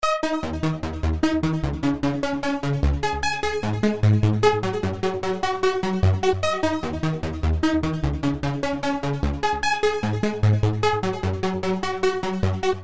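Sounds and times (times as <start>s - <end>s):
techno countdown: 0.0s - 12.8s.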